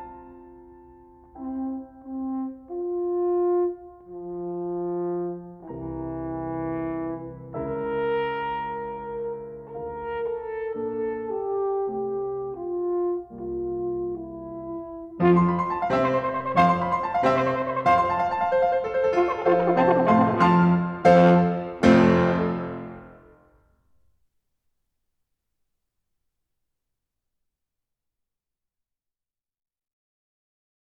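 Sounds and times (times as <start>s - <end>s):
horn and piano sonata movement in F major: 0.0s - 23.4s.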